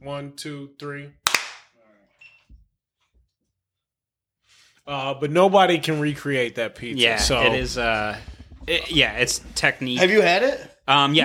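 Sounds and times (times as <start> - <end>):
speech: 0.0 - 1.2, 4.8 - 11.2
single sharp hand clap for audio sync: 1.3 - 1.7.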